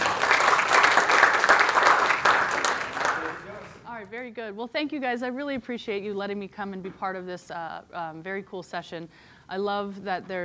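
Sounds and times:
audience applause welcoming a Cornell graduate speaker: 0:00.0 - 0:03.8
speech: 0:04.3 - 0:10.4.

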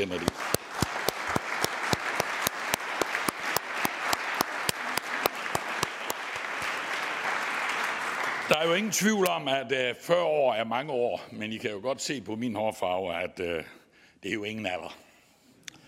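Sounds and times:
speech: 0:00.0 - 0:00.4, 0:08.5 - 0:15.0
audience applause: 0:00.0 - 0:09.3.

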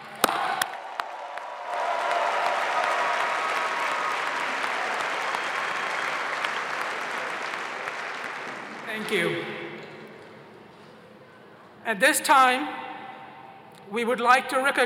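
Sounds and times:
audience applause: 0:00.0 - 0:09.0
speech: 0:09.0 - 0:09.6, 0:11.9 - 0:12.8, 0:13.9 - 0:14.8.

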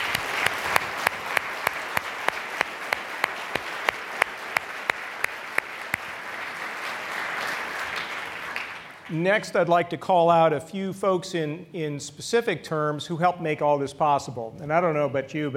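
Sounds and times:
audience applause: 0:00.0 - 0:09.2
speech: 0:09.1 - 0:15.5.

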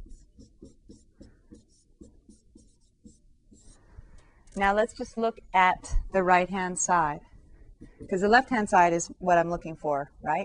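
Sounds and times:
pen strokes writing out a maths derivation: 0:00.0 - 0:03.8
speech: 0:04.6 - 0:07.3, 0:08.0 - 0:10.4.

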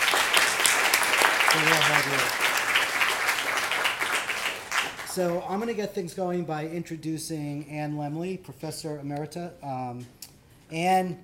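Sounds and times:
audience applause: 0:00.0 - 0:05.1
speech: 0:01.5 - 0:02.5, 0:05.2 - 0:11.2.

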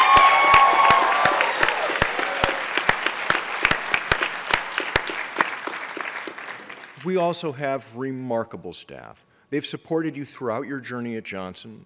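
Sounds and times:
crowd applause: 0:00.0 - 0:07.0
speech: 0:07.1 - 0:11.8.

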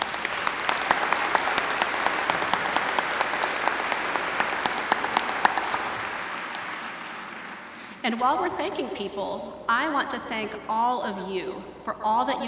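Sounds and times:
audience applause: 0:00.0 - 0:08.0
speech: 0:08.1 - 0:12.4.

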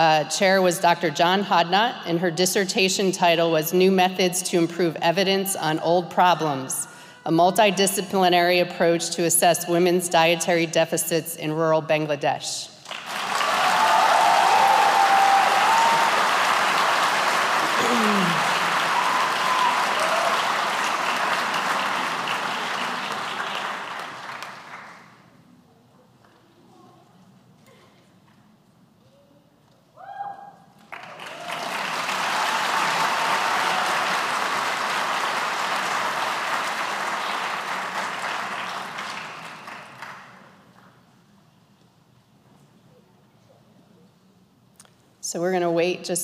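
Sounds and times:
speech: 0:00.0 - 0:13.1
audience applause: 0:12.9 - 0:25.2, 0:30.8 - 0:40.4.

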